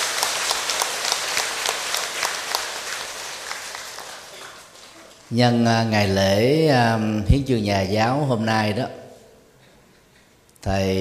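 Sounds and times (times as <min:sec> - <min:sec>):
audience applause: 0:00.0 - 0:05.3
speech: 0:05.3 - 0:09.0, 0:10.6 - 0:10.9.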